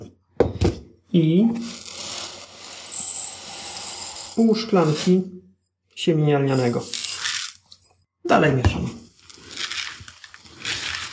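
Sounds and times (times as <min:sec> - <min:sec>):
speech: 0:01.2 - 0:01.8, 0:04.4 - 0:05.4, 0:06.0 - 0:07.0, 0:08.2 - 0:09.0
sunflower seeds poured into a bowl: 0:01.6 - 0:05.3, 0:06.5 - 0:07.6, 0:09.1 - 0:11.1.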